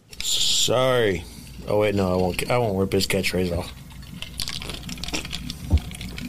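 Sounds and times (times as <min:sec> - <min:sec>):
speech: 0:00.2 - 0:03.8
liquid pouring into a glass: 0:02.4 - 0:06.2.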